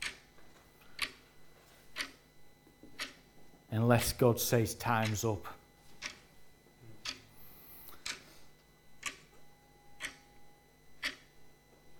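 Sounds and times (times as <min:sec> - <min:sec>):
clock ticking: 0:01.0 - 0:01.2, 0:03.0 - 0:03.2, 0:05.0 - 0:05.2, 0:08.0 - 0:08.2, 0:09.0 - 0:09.2, 0:10.0 - 0:10.2, 0:11.0 - 0:11.3
speech: 0:03.8 - 0:05.6.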